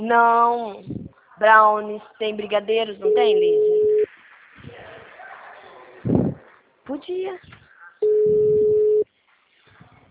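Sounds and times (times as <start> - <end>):
speech: 0.0 - 3.8, 6.9 - 7.6
telephone ringback tone while a call goes unanswered: 3.1 - 4.1, 8.0 - 9.0.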